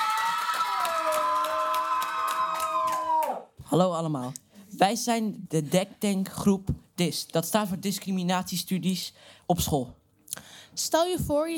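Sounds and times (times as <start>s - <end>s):
audience applause and cheering: 0.0s - 3.6s
speech: 3.7s - 10.0s, 10.8s - 11.5s.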